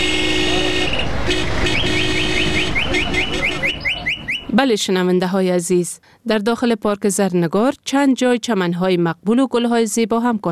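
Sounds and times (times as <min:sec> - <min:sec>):
car horns honking in street traffic: 0:00.0 - 0:04.6
dense rumble of engines and road noise: 0:00.0 - 0:04.6
speech: 0:04.6 - 0:10.5.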